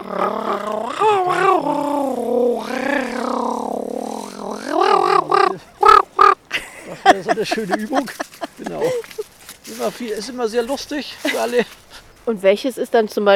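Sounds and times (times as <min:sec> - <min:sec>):
human voice imitating raven croaks and caws: 0:00.0 - 0:06.5
speech: 0:00.1 - 0:00.8, 0:07.3 - 0:09.1, 0:09.8 - 0:13.3
laughter: 0:06.5 - 0:09.3.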